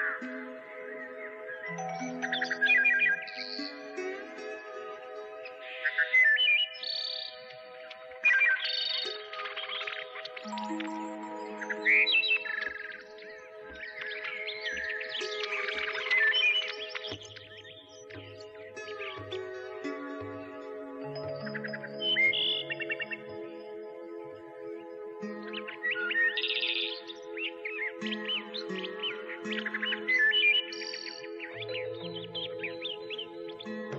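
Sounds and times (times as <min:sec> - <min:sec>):
birds singing: 0:00.0 - 0:33.9.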